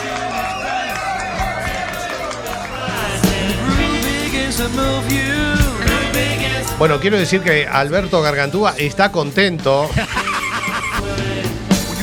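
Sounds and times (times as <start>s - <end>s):
audience clapping: 0.0s - 5.0s
crowd cheering with shouts and whoops: 0.0s - 7.8s, 9.9s - 12.0s
speech: 4.6s - 10.2s
laughter: 9.8s - 12.0s.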